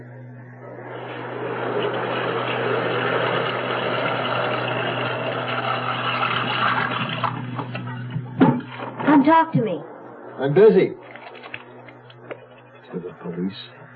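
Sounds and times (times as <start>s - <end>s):
low droning hum: 0.0s - 13.9s
water pouring from a tap into a tub: 1.3s - 8.8s
speech: 9.2s - 11.0s.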